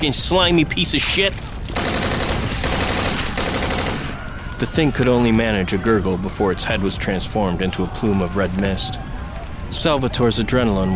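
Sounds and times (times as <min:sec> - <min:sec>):
speech: 0:00.0 - 0:01.5, 0:04.6 - 0:09.1, 0:09.7 - 0:10.9
rifle gunfire: 0:01.7 - 0:04.3.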